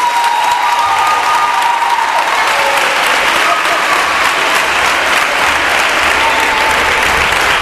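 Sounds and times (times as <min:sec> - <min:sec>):
loud audience applause: 0:00.0 - 0:07.5.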